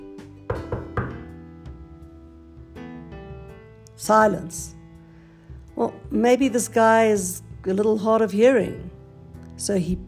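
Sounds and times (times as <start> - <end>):
firm knocking on a door: 0.5 - 1.3
speech: 4.0 - 4.8, 5.8 - 8.9, 9.6 - 10.0.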